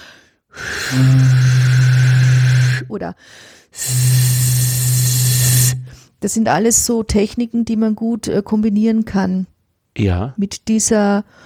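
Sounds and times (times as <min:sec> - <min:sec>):
airy breath noise: 0:00.0 - 0:06.2
low wind instrument sustaining one note: 0:00.6 - 0:02.9, 0:03.8 - 0:06.0
speech: 0:00.9 - 0:01.5, 0:02.9 - 0:04.9, 0:05.6 - 0:11.4.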